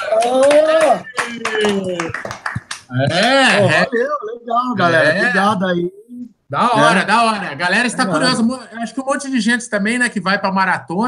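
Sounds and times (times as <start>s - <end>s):
hand clapping: 0.0s - 3.6s
speech: 0.2s - 2.3s, 2.9s - 11.0s.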